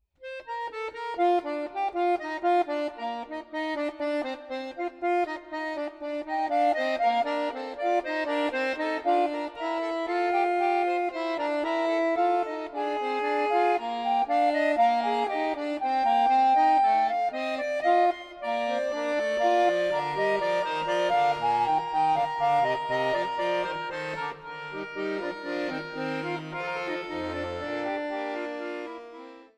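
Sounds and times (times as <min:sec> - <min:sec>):
fugue in B flat major on accordion: 0:00.2 - 0:29.5.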